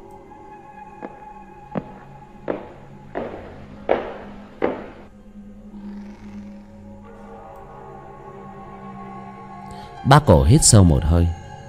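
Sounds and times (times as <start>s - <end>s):
light footsteps climbing wooden stairs: 1.0s - 5.1s
speech: 10.1s - 11.6s.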